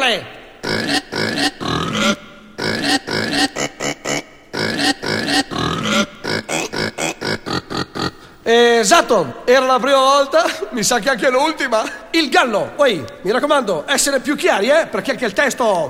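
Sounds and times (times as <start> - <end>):
speech: 0.0 - 2.2, 8.5 - 15.8
person imitating pig grunts: 0.6 - 8.3.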